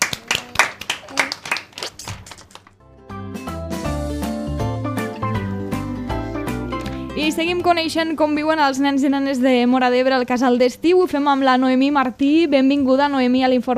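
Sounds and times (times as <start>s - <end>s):
small group clapping: 0.0s - 2.8s, 6.7s - 7.1s
musical tune: 2.8s - 7.6s
speech: 7.2s - 13.7s.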